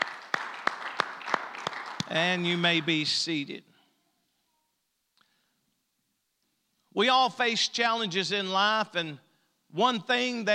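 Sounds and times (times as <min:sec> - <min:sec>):
scattered applause: 0:00.0 - 0:03.0
audience clapping hands in unison: 0:00.0 - 0:03.1
speech: 0:02.1 - 0:03.7, 0:07.0 - 0:10.5.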